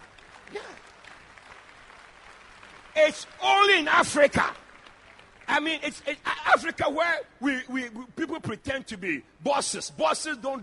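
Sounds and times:
audience clapping hands: 0.0 - 6.8
speech: 3.0 - 4.6, 5.5 - 10.6.

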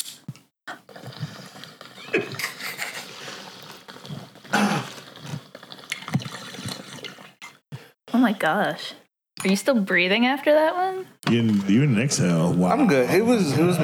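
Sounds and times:
bong water bubbling: 0.7 - 7.9
speech: 8.2 - 13.8.

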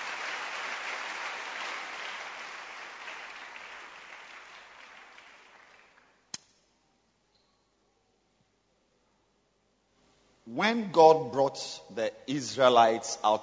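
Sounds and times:
audience clapping hands: 0.0 - 6.2
speech: 10.5 - 13.4.

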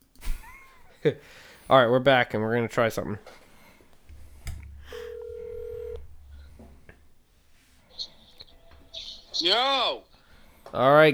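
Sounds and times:
speech: 1.0 - 3.4, 9.4 - 10.1, 10.7 - 11.1
phone click: 4.0 - 4.7
sustained electronic telephone ringing tone: 4.8 - 6.5.

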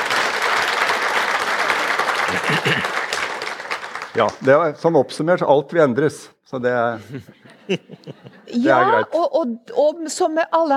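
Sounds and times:
audience clapping: 0.0 - 4.7
laughter: 2.1 - 3.2, 6.9 - 9.0
speech: 4.2 - 10.7.

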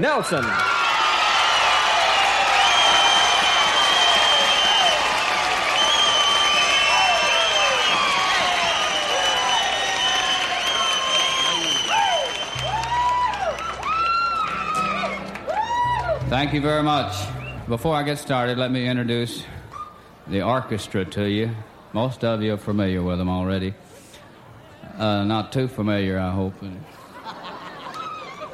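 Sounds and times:
speech: 0.0 - 0.8, 16.3 - 19.5, 20.3 - 23.8, 25.0 - 27.0
crowd applauding and cheering to welcome a country singer on stage: 0.0 - 17.6
whoops and whistles from a crowd: 2.5 - 16.1
laughter: 26.9 - 28.5.

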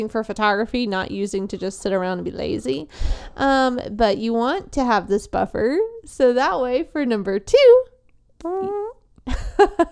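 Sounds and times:
speech: 0.0 - 9.9
person making fart noises with mouth: 8.4 - 9.1.

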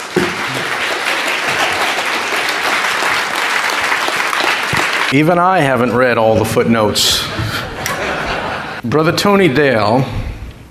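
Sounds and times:
church audience applause welcoming a guest speaker: 0.0 - 5.2
speech: 5.1 - 7.6, 8.8 - 10.2
laughter: 7.0 - 8.8.

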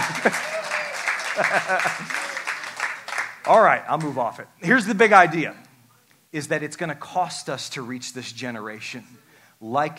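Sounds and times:
laughter: 0.0 - 3.0
audience clapping: 0.0 - 4.4
speech: 0.2 - 0.5, 1.4 - 2.2, 3.5 - 5.6, 6.3 - 9.9.

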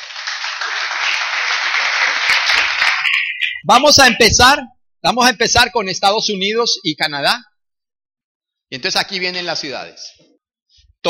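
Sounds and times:
audience applause: 0.0 - 3.6
speech: 3.6 - 7.5, 8.7 - 10.3.

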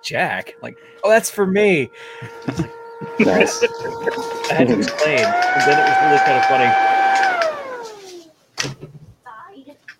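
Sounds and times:
speech: 0.0 - 7.3, 8.6 - 9.0
laughter: 1.8 - 6.8
ventilation system switching off: 4.5 - 7.9.

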